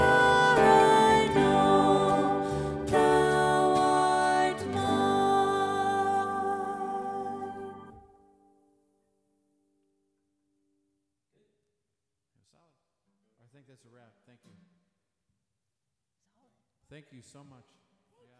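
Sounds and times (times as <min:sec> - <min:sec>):
soprano singing song parts: 0:00.0 - 0:08.0.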